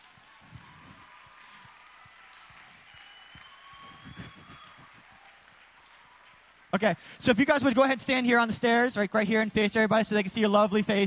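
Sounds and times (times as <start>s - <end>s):
audience applause: 0.0s - 7.9s
speech: 6.8s - 11.0s.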